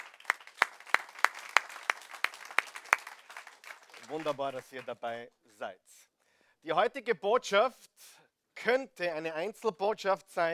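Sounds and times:
audience applause: 0:00.0 - 0:04.9
speech: 0:04.1 - 0:07.9, 0:08.6 - 0:10.5.

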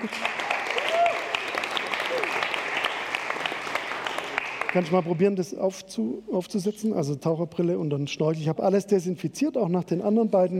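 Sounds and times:
speech: 0:00.0 - 0:00.4, 0:04.7 - 0:10.5
audience applause: 0:00.0 - 0:05.2.

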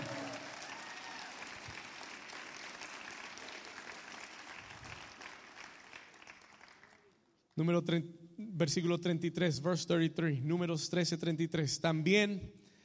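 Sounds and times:
applause: 0:00.0 - 0:07.3
speech: 0:07.6 - 0:12.6.

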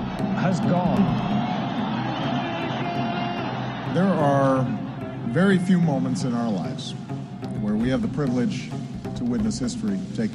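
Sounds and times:
crowd cheering: 0:00.0 - 0:06.9
speech: 0:00.4 - 0:01.4, 0:03.9 - 0:10.3.

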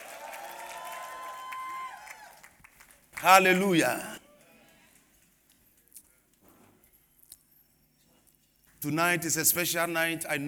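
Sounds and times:
audience clapping hands: 0:00.0 - 0:05.6
speech: 0:03.2 - 0:04.2, 0:08.8 - 0:10.4.

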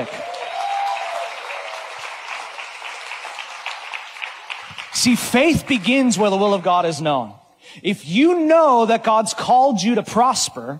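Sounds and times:
audience clapping: 0:00.0 - 0:07.3
speech: 0:05.0 - 0:10.7.

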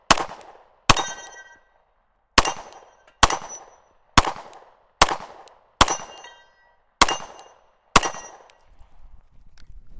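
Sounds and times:
gunshots from a shooter firing a timed competition stage: 0:00.0 - 0:01.5, 0:02.4 - 0:06.4, 0:07.0 - 0:08.5.

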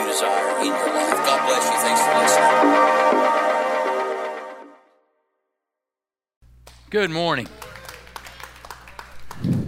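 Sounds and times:
speech: 0:00.2 - 0:03.3, 0:06.9 - 0:07.7
audience applause: 0:07.2 - 0:09.6.

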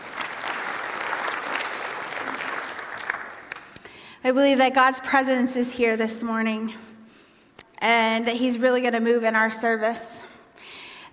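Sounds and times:
audience applause: 0:00.0 - 0:03.8
speech: 0:04.2 - 0:06.9, 0:07.8 - 0:10.3.

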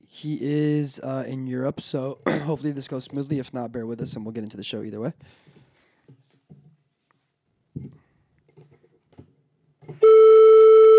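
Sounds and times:
speech: 0:00.1 - 0:05.6
telephone line beep on a call: 0:10.0 - 0:10.9.

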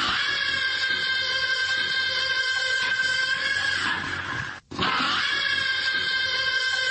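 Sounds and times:
singer's voice imitating a forklift: 0:00.0 - 0:06.8.

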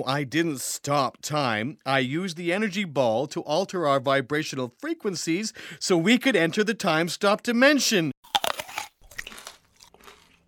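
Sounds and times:
speech: 0:00.0 - 0:08.2
teeth biting into a crunchy candy apple: 0:08.2 - 0:10.4
soft chewing: 0:08.3 - 0:10.4.

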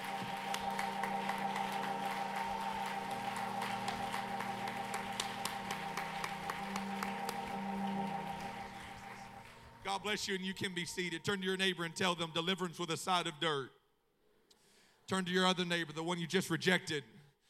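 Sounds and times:
audience clapping hands: 0:00.0 - 0:10.6
speech: 0:09.9 - 0:13.8, 0:15.1 - 0:17.1.

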